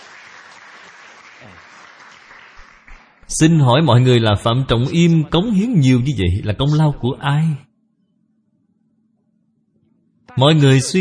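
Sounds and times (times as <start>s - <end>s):
audience applause: 0.0s - 3.3s
speech: 3.3s - 7.7s, 10.4s - 11.0s.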